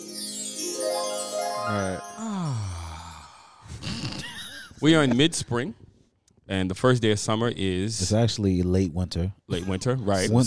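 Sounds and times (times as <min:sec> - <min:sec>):
magical fairy-dust twinkle: 0:00.0 - 0:03.4
short breathy burst: 0:02.0 - 0:04.5
speech: 0:04.8 - 0:05.8, 0:06.5 - 0:10.4.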